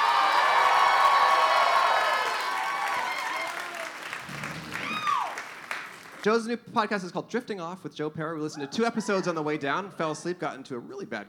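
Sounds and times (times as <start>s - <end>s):
crowd applauding: 0.0s - 6.3s
speech: 6.2s - 11.2s
laughter: 8.6s - 10.0s.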